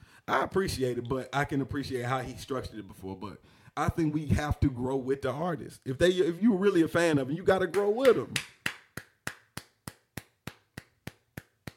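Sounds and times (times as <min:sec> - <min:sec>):
speech: 0:00.3 - 0:08.6
hands clapping: 0:07.5 - 0:11.7.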